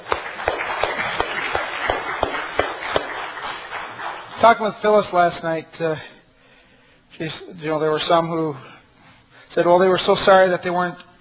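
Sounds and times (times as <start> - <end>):
crowd applause: 0.0 - 4.5
speech: 4.4 - 6.2, 7.2 - 8.7, 9.5 - 11.1.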